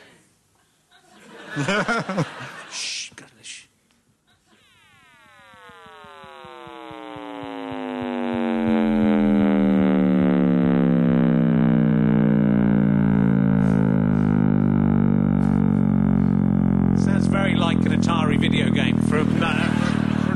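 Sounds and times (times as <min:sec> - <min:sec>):
laughter: 0:00.9 - 0:03.1, 0:19.2 - 0:20.3
speech: 0:01.5 - 0:03.3
frequency-boosted sonification of the Big Bang, harmonic-rich synthetic tone: 0:04.6 - 0:20.3.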